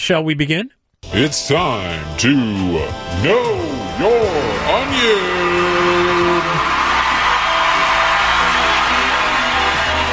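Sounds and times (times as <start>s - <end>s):
speech: 0.0s - 5.4s
studio crowd cheering and whooping: 4.0s - 10.1s.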